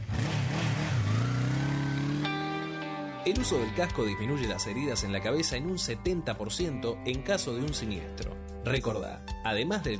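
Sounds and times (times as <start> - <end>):
motorcycle engine revving: 0.0 - 3.2
speech: 3.2 - 9.9.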